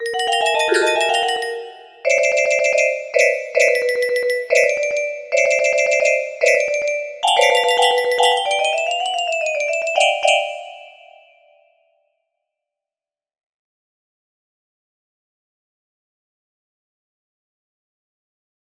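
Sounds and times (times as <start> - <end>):
music box melody: 0.0 - 11.5.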